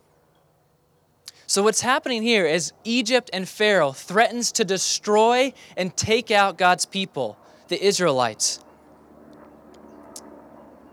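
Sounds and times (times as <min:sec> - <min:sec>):
airplane flying overhead: 0:01.3 - 0:10.9
speech: 0:01.5 - 0:08.7.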